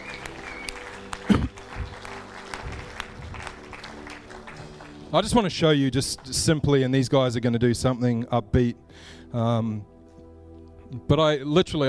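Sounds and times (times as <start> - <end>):
audience applause: 0.0 - 6.6
speech: 5.1 - 9.9, 10.9 - 11.8.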